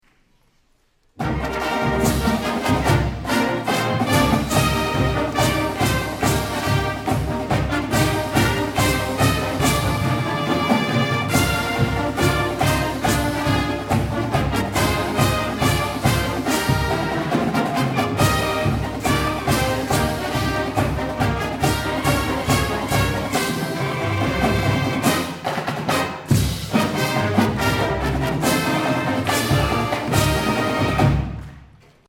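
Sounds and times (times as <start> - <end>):
marching band: 1.2 - 32.0.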